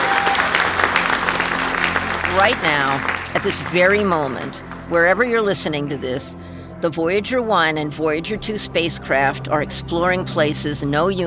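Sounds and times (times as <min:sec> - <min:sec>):
audience clapping: 0:00.0 - 0:05.2
speech: 0:02.4 - 0:11.2.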